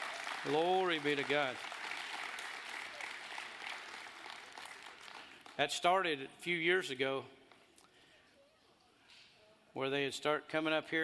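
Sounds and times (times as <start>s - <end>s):
round of applause: 0.0s - 5.7s
speech: 0.4s - 1.7s, 5.6s - 7.4s, 9.8s - 11.0s.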